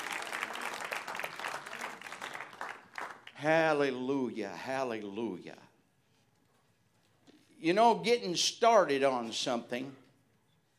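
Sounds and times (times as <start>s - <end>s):
audience clapping hands: 0.0s - 3.5s
speech: 3.4s - 5.7s, 7.6s - 10.0s.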